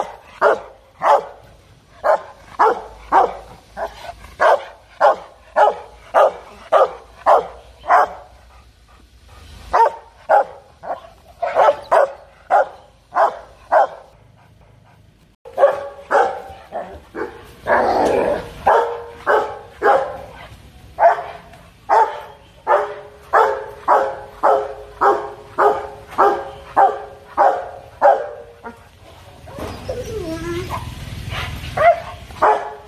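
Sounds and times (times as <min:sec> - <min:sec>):
dog barking: 0:00.0 - 0:01.4, 0:02.0 - 0:08.3, 0:09.7 - 0:14.1, 0:15.5 - 0:17.8, 0:18.6 - 0:28.8, 0:31.4 - 0:32.8.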